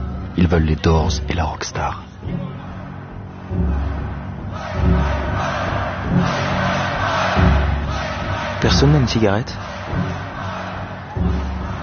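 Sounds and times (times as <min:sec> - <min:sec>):
speech: 0:00.4 - 0:02.6, 0:03.5 - 0:03.8, 0:04.7 - 0:05.5, 0:06.1 - 0:06.5, 0:08.6 - 0:10.2
audience shouting and jeering at a rock concert: 0:02.4 - 0:11.8.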